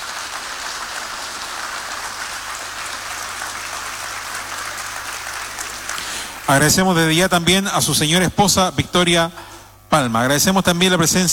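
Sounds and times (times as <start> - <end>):
loud sustained applause from a crowd: 0.0 - 7.4
speech: 6.5 - 11.3.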